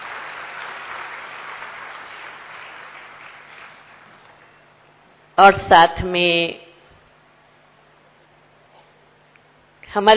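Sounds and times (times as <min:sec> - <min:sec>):
crowd applause: 0:00.0 - 0:04.5
speech: 0:05.4 - 0:06.6, 0:10.0 - 0:10.1.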